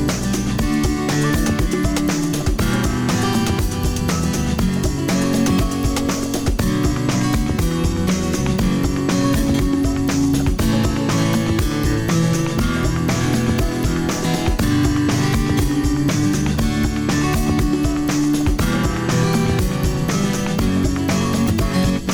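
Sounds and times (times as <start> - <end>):
acoustic guitar: 0.0 - 22.1.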